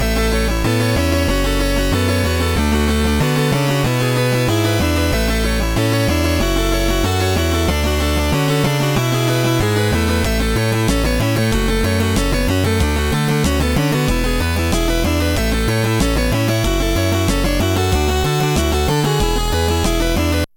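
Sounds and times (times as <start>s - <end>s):
old keyboard: 0.0s - 20.5s.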